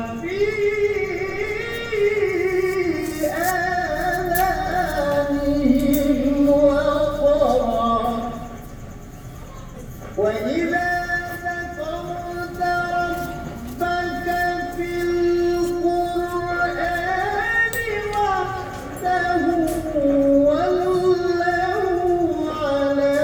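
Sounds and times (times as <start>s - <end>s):
man singing at a mosque in Indonesia: 0.0s - 9.3s, 10.0s - 23.2s.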